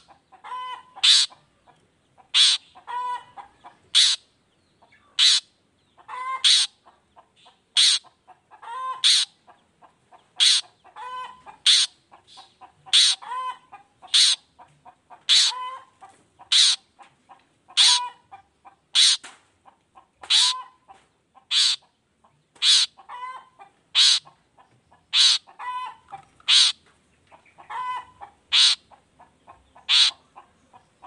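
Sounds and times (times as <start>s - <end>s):
long-tailed shrike calling: 0.0s - 6.8s, 7.4s - 9.5s, 10.3s - 14.4s, 15.2s - 16.8s, 17.7s - 18.2s, 18.9s - 19.3s, 20.2s - 20.8s, 21.4s - 21.9s, 22.6s - 23.4s, 24.0s - 31.0s.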